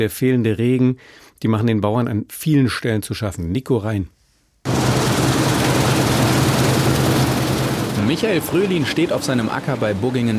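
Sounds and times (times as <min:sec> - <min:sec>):
speech: 0:00.0 - 0:04.8, 0:08.1 - 0:10.3
combine harvester running in a field: 0:04.7 - 0:10.3.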